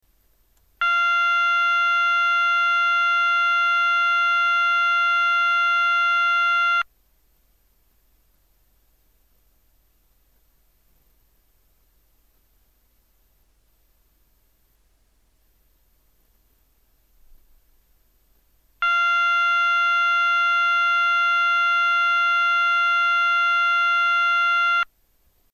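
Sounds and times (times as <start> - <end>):
signal device tone: 0.8 - 6.9, 18.8 - 24.9.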